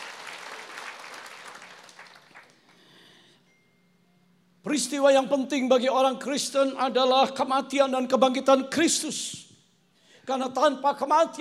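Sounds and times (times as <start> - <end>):
audience applause: 0.0 - 2.7
speech: 4.6 - 9.5, 10.3 - 11.3.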